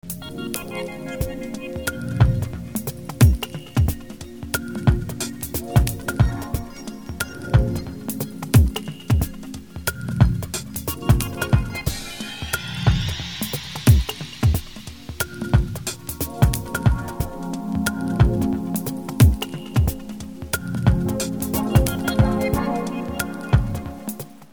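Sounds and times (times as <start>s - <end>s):
ambient music: 0.0s - 24.5s.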